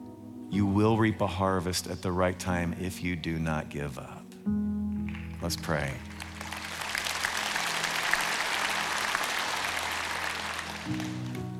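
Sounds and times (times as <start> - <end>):
speech: 0.5 - 4.6, 5.4 - 6.2
audience clapping: 5.0 - 11.5.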